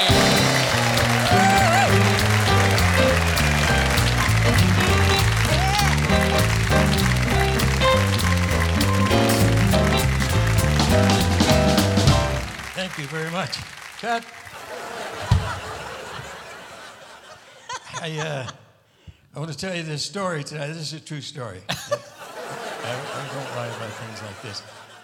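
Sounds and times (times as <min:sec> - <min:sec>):
loud music on a variety show: 0:00.0 - 0:12.7
audience applause welcoming a guest onto a variety show stage: 0:00.0 - 0:16.8
speech: 0:13.4 - 0:14.4, 0:18.0 - 0:18.6, 0:19.4 - 0:22.2, 0:22.8 - 0:24.9
laughter: 0:14.5 - 0:18.7, 0:21.7 - 0:25.0.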